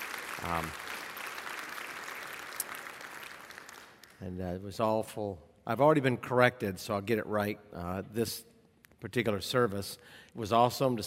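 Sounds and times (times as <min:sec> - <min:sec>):
audience applause: 0:00.0 - 0:04.2
speech: 0:00.4 - 0:00.8, 0:04.2 - 0:11.0.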